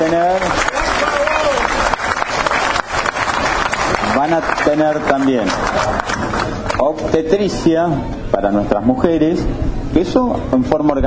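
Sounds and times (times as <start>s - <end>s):
speech: 0.0s - 0.7s, 4.2s - 11.0s
applause for the town mayor at a public event: 0.0s - 7.0s.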